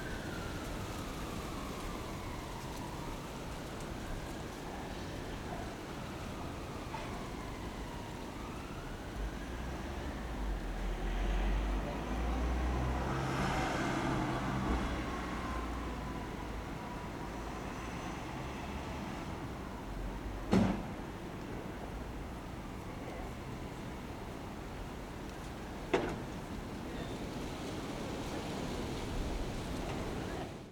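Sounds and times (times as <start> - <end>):
police siren: 0.0 - 20.3, 21.6 - 24.4
autumn leaves rustling: 0.0 - 30.7
traffic: 0.0 - 30.7
wind on residential town outskirts: 0.0 - 30.7.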